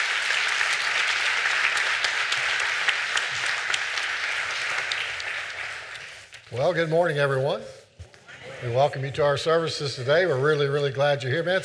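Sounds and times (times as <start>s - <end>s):
church congregation clapping to honor veterans: 0.0s - 6.5s
speech: 6.5s - 7.8s, 8.6s - 11.6s.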